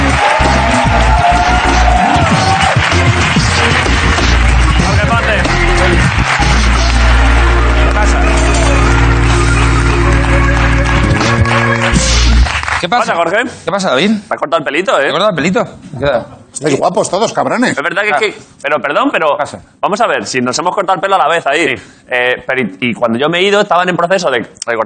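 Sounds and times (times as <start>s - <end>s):
crowd applause: 0.0s - 13.0s
low rumbling tones: 3.4s - 12.8s
speech: 12.8s - 24.8s.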